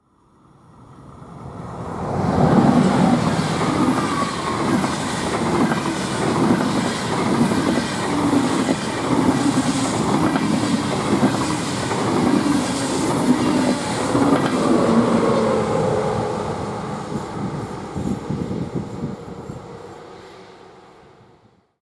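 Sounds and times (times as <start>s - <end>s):
diesel and electric trains: 0.0s - 21.7s.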